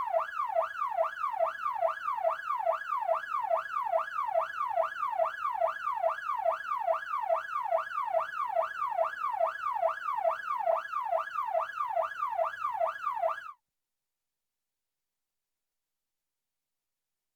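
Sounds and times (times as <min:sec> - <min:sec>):
emergency yelp siren heard from interior: 0:00.0 - 0:13.6.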